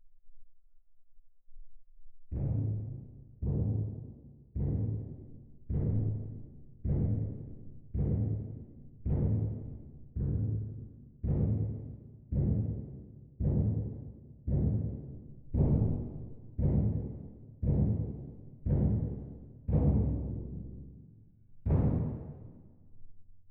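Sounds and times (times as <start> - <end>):
percussion: 2.1 - 22.8.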